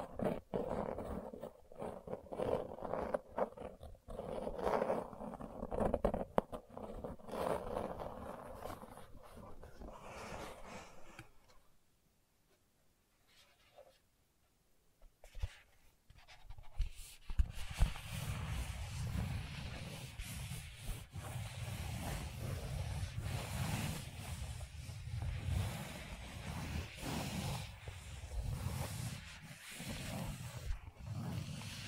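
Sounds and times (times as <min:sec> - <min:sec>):
gentle scratching: 0:00.0 - 0:11.6, 0:13.2 - 0:14.1, 0:15.2 - 0:31.8.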